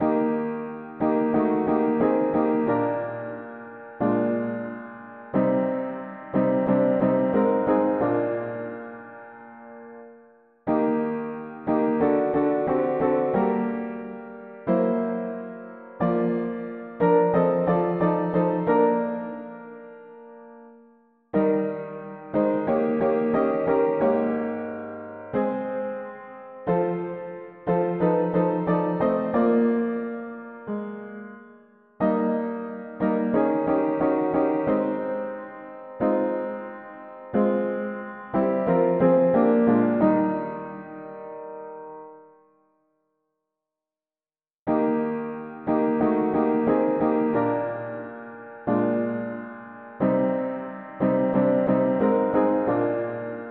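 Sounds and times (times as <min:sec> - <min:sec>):
mono piano playing hymns: 0:00.0 - 0:42.4, 0:44.7 - 0:53.4.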